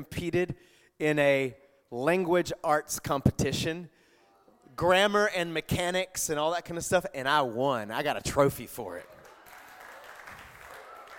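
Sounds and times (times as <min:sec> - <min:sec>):
speech: 0:00.0 - 0:04.0, 0:04.8 - 0:09.1
audience clapping: 0:09.0 - 0:11.1.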